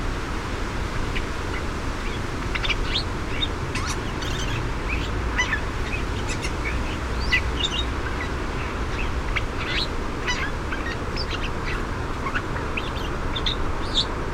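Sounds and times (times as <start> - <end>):
western scrub-jay sweeping calls: 0.2 - 14.2.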